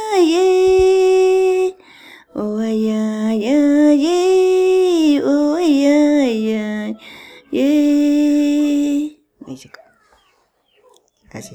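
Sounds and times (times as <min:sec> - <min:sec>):
song: 0:00.3 - 0:09.2.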